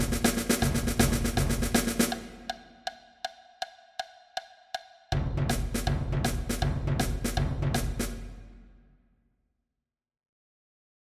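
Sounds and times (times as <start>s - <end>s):
rock anthem percussion: 0.0s - 2.6s, 5.2s - 8.3s.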